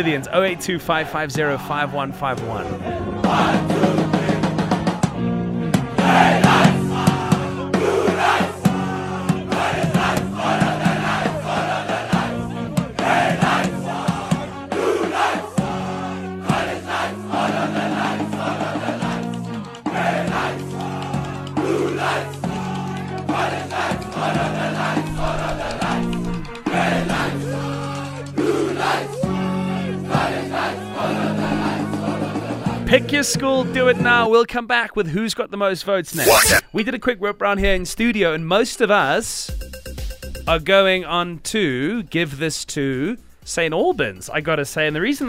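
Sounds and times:
speech: 0.0 - 4.0, 33.0 - 39.6, 40.5 - 45.2
large crowd chanting a high school war cry in unison: 2.4 - 32.8.

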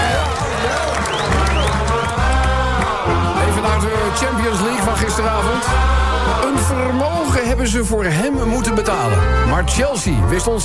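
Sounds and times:
cheering: 0.0 - 6.4
crowd applause: 0.0 - 7.0
speech: 4.5 - 5.9, 6.7 - 10.6.

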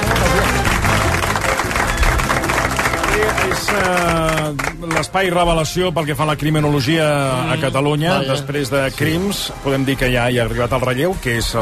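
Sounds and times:
applause: 0.0 - 5.4
speech: 3.6 - 11.6.

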